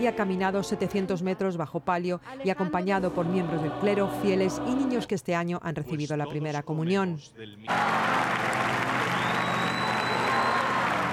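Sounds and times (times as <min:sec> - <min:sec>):
speech: 0:00.0 - 0:08.3
crowd applause at outdoor papal mass: 0:07.7 - 0:11.1.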